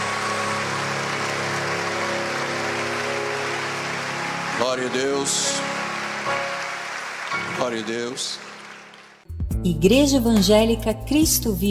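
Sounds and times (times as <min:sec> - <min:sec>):
crowd applause: 0:00.0 - 0:09.2
speech: 0:04.6 - 0:06.4, 0:07.6 - 0:08.5, 0:09.6 - 0:11.6.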